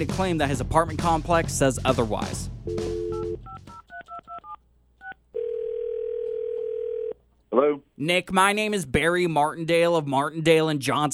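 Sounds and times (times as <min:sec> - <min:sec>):
speech: 0:00.0 - 0:02.9, 0:07.6 - 0:11.1
steady low phone ringing tone: 0:02.7 - 0:04.6, 0:05.4 - 0:07.2
phone keypad dialing beeps: 0:03.1 - 0:05.2.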